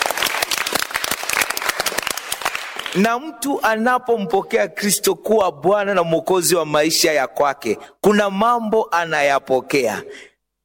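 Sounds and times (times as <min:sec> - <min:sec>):
group applause during a Christian teaching session with children: 0:00.0 - 0:03.2
speech: 0:02.9 - 0:10.3.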